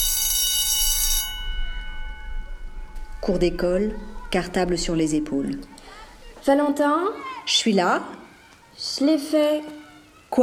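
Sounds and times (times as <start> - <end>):
school bell ringing: 0.0 - 7.5
speech: 3.2 - 5.8, 6.4 - 8.2, 8.8 - 10.4.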